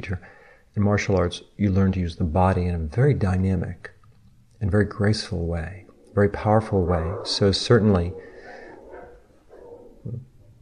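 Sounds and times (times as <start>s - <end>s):
speech: 0.0s - 4.0s, 4.6s - 8.3s, 10.0s - 10.3s
dogs barking: 5.7s - 10.6s.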